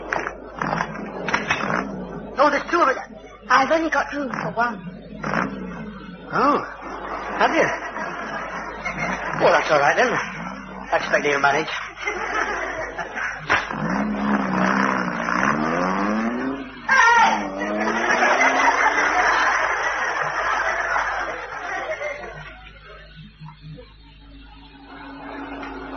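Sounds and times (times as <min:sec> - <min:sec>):
big lorry engine driving and changing gears: 0:00.0 - 0:25.9
speech: 0:02.4 - 0:05.4, 0:06.3 - 0:06.8, 0:07.4 - 0:07.9, 0:09.4 - 0:10.3, 0:10.9 - 0:12.2
laughter: 0:06.3 - 0:14.3, 0:17.4 - 0:24.2, 0:24.8 - 0:25.9.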